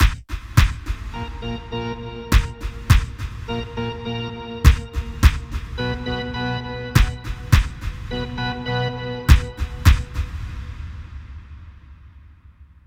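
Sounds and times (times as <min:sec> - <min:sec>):
short tune: 0:01.1 - 0:10.2.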